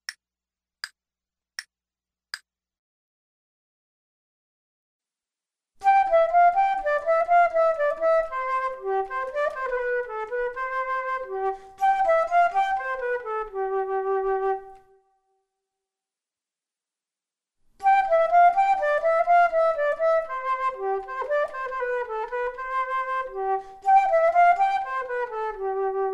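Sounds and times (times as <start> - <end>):
flute duet: 5.8 - 15.1, 17.8 - 26.1.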